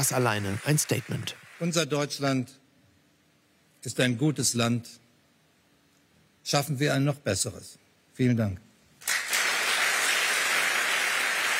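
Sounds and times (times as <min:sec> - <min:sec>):
applause during standing ovation: 0:00.0 - 0:02.0, 0:09.0 - 0:11.5
speech: 0:00.0 - 0:02.6, 0:03.8 - 0:05.0, 0:06.4 - 0:08.7.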